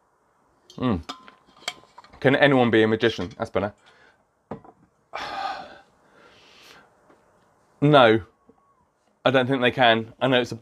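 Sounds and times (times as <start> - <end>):
speech: 0.8 - 1.2, 2.2 - 4.0, 7.8 - 8.3, 9.2 - 10.5
glass clinking: 1.0 - 2.1.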